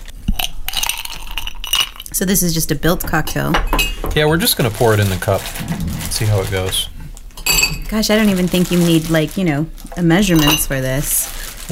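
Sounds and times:
ice cubes clattering and clinking into glasses: 0.4 - 2.1, 7.4 - 7.9, 10.2 - 10.8
speech: 2.1 - 7.0, 7.9 - 11.7.

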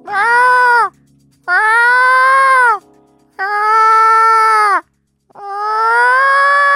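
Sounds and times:
person imitating a cat's meow: 0.0 - 0.9, 1.5 - 2.8, 3.4 - 4.8, 5.4 - 6.7.

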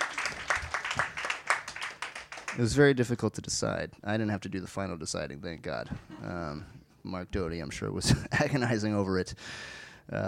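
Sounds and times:
round of applause: 0.0 - 2.8
speech: 2.6 - 10.2.

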